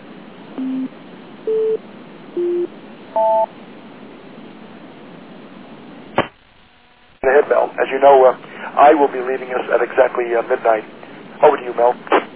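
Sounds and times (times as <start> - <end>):
speech: 0.6 - 2.5, 3.2 - 3.6, 7.3 - 12.2
electronic phone call signal tones: 2.4 - 3.5.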